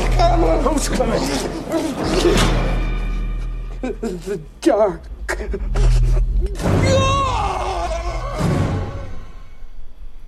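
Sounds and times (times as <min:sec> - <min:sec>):
speech: 0:00.2 - 0:02.8, 0:03.8 - 0:07.2
campy overacted movie scream: 0:05.6 - 0:09.9.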